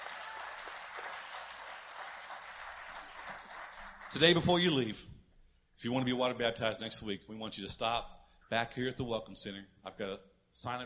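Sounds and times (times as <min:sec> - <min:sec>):
audience applauding: 0:00.0 - 0:04.5
speech: 0:04.1 - 0:05.1, 0:05.8 - 0:10.8.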